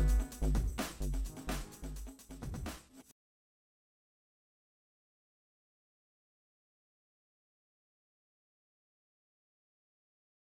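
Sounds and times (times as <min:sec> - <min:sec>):
sliced house percussion: 0:00.0 - 0:03.1.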